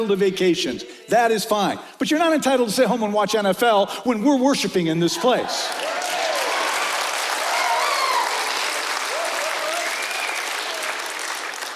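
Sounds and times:
speech: 0.0 - 6.0
crowd clapping: 5.6 - 11.7.

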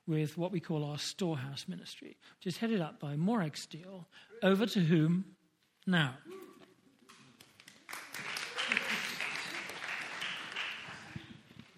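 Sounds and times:
speech: 0.1 - 6.4
audience applause: 7.1 - 11.7.

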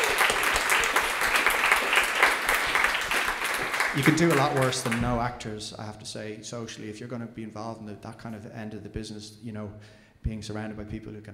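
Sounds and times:
audience round of applause: 0.0 - 5.2
speech: 4.0 - 11.3.

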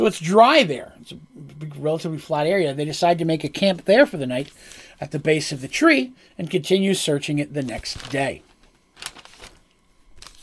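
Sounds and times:
speech: 0.0 - 8.5
paper sticking together: 9.0 - 9.6, 10.2 - 10.4.

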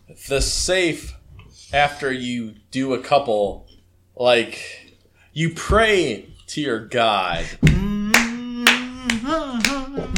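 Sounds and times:
speech: 0.1 - 7.9
hand claps: 7.6 - 10.1
voice holding a continuous sung note: 7.8 - 10.1.

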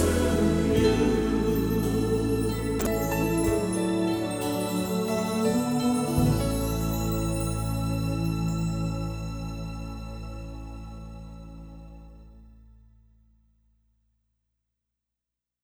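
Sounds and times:
chorus singing: 0.0 - 10.4.

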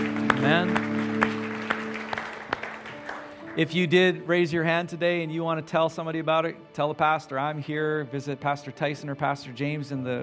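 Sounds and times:
soft crowd applause: 0.0 - 3.7
speech: 3.6 - 10.2.

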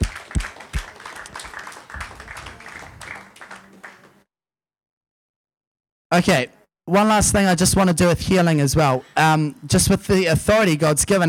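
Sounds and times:
audience clapping: 0.0 - 4.2
speech: 6.1 - 11.2.

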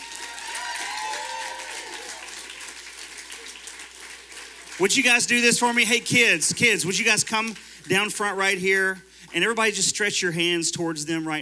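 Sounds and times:
audience applause: 0.0 - 6.0
speech: 4.8 - 11.4.

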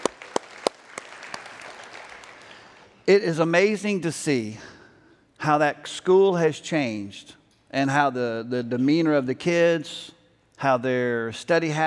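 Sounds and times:
audience clapping: 0.0 - 3.0
speech: 3.1 - 4.7, 5.4 - 11.8.

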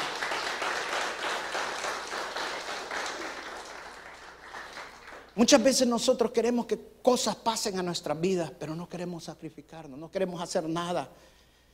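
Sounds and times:
audience applause: 0.0 - 5.4
speech: 5.4 - 11.4.

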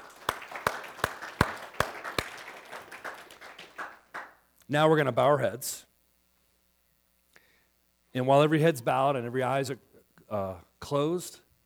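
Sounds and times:
audience applause: 0.0 - 4.4
speech: 4.7 - 5.9, 8.2 - 11.4.

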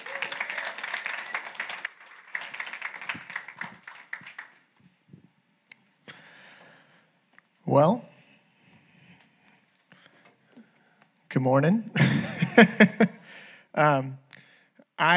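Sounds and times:
laughter: 0.0 - 4.5, 12.0 - 13.2
church congregation applauding to welcome a speaker: 0.0 - 5.0
speech: 7.7 - 8.1, 11.4 - 13.2, 13.8 - 14.2.

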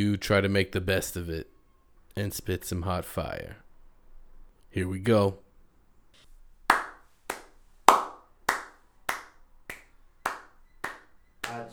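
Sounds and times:
speech: 0.0 - 1.5, 2.2 - 3.6, 4.7 - 5.4
single person clapping hands in a slow steady beat: 6.7 - 11.7.

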